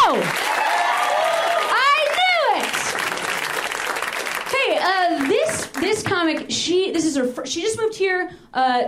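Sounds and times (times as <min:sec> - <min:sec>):
audience applause: 0:00.2 - 0:06.0
whoops: 0:00.4 - 0:02.7
speech: 0:06.3 - 0:08.8.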